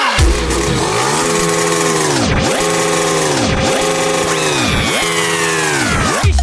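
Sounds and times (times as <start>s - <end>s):
motorcycle engines of partygoers revving at a party: 0.2s - 6.2s.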